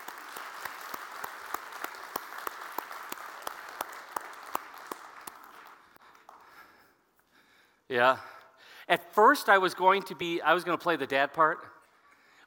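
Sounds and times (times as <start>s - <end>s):
audience applause: 0.0s - 6.6s
speech: 7.9s - 8.3s, 8.9s - 11.7s.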